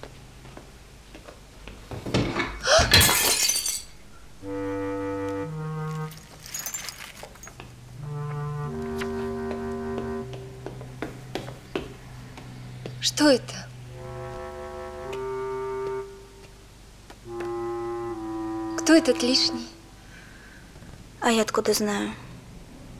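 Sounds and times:
framed photograph falling and its glass breaking: 2.4 - 4.0, 6.0 - 7.6
sustained musical tones: 4.4 - 6.9, 7.8 - 11.0, 13.7 - 20.0
speech: 13.2 - 13.6, 19.0 - 19.8, 21.2 - 22.2.

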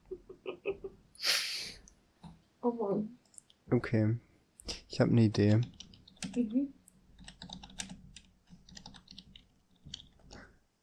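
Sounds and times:
speech: 2.7 - 4.3, 4.9 - 6.8
quiet typing on a computer keyboard: 5.4 - 6.5, 7.2 - 10.4.

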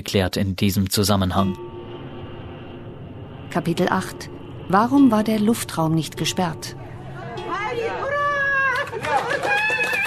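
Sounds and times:
speech: 0.0 - 1.7, 3.5 - 8.1
villagers cheering in eastern Ukraine: 8.3 - 10.0.

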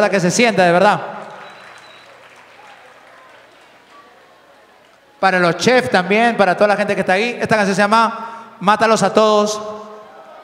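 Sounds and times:
speech: 0.0 - 1.1, 5.2 - 9.8
concert audience applause: 1.0 - 5.2.

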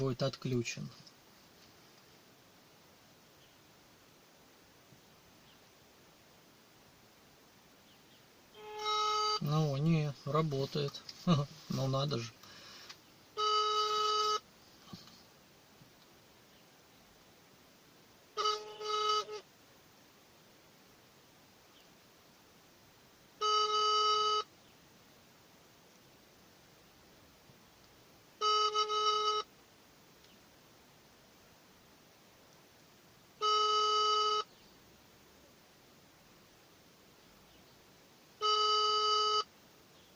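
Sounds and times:
speech: 0.0 - 1.1, 9.4 - 12.5
quiet hiss: 0.0 - 40.1
phone ringback tone: 13.4 - 14.4, 18.4 - 19.4, 23.4 - 24.5, 28.4 - 29.5, 33.4 - 34.5, 38.4 - 39.5.

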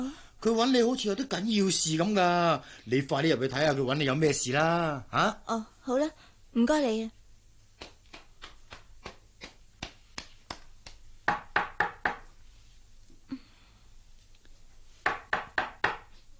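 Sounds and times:
speech: 0.0 - 7.2
knocking on a door: 11.3 - 12.2, 15.0 - 16.1.

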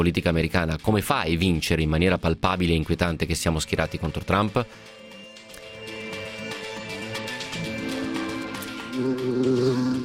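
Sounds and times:
speech: 0.0 - 5.1, 9.0 - 10.0
housefly buzzing in the studio: 6.0 - 10.0.

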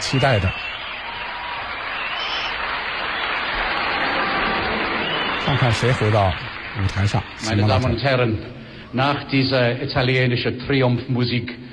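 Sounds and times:
speech: 0.0 - 0.7, 5.5 - 11.6
live audience applause: 0.0 - 8.0.

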